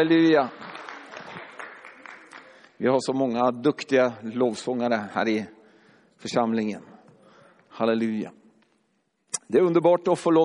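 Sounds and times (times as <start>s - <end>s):
speech: 0.0s - 0.7s, 2.8s - 5.6s, 6.2s - 6.9s, 7.8s - 8.4s, 9.5s - 10.4s
audience applauding: 0.0s - 2.8s.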